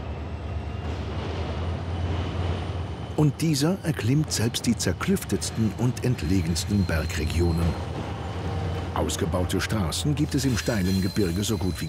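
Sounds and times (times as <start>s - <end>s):
train running on tracks: 0.0s - 11.8s
speech: 3.2s - 8.1s, 9.0s - 11.8s.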